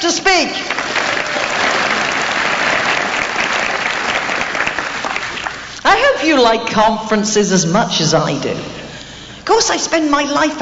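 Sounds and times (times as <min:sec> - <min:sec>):
speech: 0:00.0 - 0:00.8, 0:06.2 - 0:08.8, 0:09.5 - 0:10.6
short audience applause: 0:00.6 - 0:05.7.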